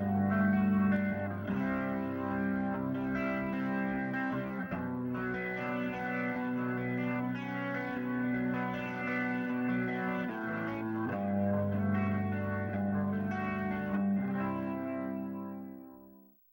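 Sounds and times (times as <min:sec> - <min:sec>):
electric guitar: 0:00.0 - 0:16.3.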